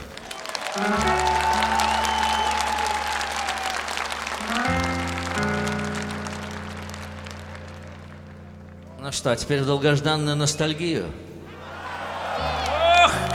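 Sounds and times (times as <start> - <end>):
audience applause: 0.0 - 8.9, 11.6 - 13.3
speech: 0.8 - 1.2, 9.1 - 11.3.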